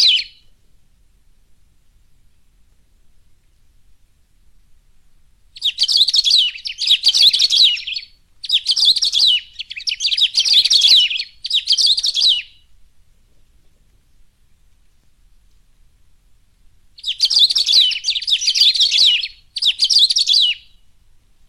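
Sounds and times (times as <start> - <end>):
Saffron-billed sparrow singing rapid tangled twittering phrases: 0.0 - 0.5, 5.6 - 12.7, 17.0 - 20.8.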